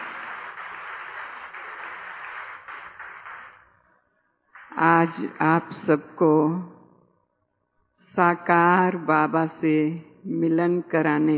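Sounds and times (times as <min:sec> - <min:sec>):
audience clapping: 0:00.0 - 0:03.7
speech: 0:04.8 - 0:06.7, 0:08.2 - 0:11.3.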